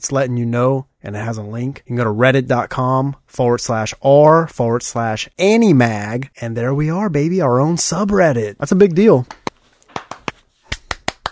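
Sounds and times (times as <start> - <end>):
speech: 0.0 - 9.4
hand clapping: 9.2 - 11.3.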